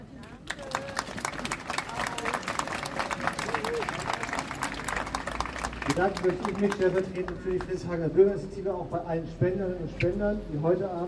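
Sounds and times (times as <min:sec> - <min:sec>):
faint voices and cheers: 0:00.2 - 0:06.0
crowd applause: 0:00.4 - 0:07.4
speech: 0:05.9 - 0:11.0.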